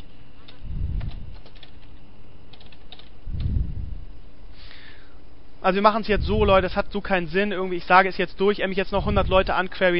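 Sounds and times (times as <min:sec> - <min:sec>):
typing on a computer keyboard: 0:00.0 - 0:03.5
speech: 0:05.6 - 0:09.9.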